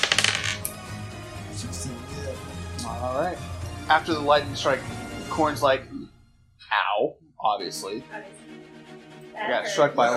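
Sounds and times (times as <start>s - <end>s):
dice clattering across a hard surface: 0.0s - 0.7s
speech: 1.6s - 8.6s, 9.4s - 10.1s.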